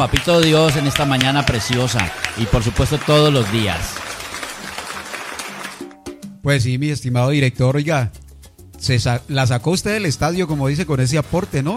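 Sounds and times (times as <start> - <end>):
speech: 0.0 - 4.1, 6.4 - 8.2, 8.8 - 11.7
applause: 0.0 - 6.0.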